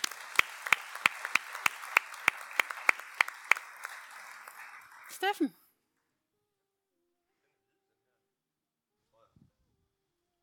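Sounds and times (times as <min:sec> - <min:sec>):
scattered applause for a speaker: 0:00.0 - 0:05.6
speech: 0:05.2 - 0:05.6.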